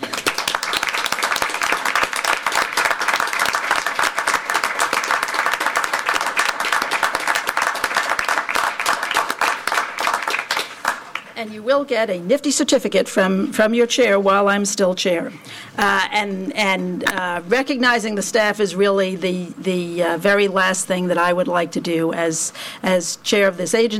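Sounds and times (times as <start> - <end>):
audience applause for staff standing: 0.0 - 11.3
speech: 11.4 - 23.9.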